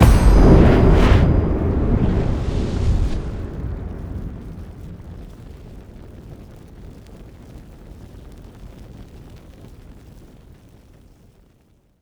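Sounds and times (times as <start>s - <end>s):
free spin outro transition sound: 0.0s - 5.1s.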